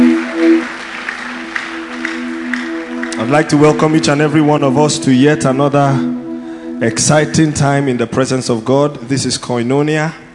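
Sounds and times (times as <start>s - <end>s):
church congregation applauding: 0.0s - 6.2s
sustained musical tones: 0.0s - 10.3s
speech: 3.2s - 6.2s, 6.8s - 10.2s.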